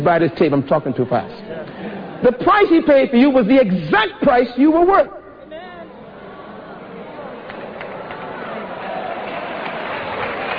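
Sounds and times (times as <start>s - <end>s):
speech: 0.0s - 1.6s, 2.2s - 5.2s
faint murmur of voices: 0.6s - 10.1s
audience clapping: 7.4s - 10.5s.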